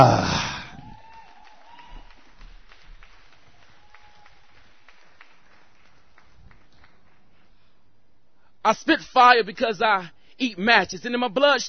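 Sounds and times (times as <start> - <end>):
speech: 0.0 - 0.4, 8.7 - 11.6
audience clapping: 0.7 - 7.8.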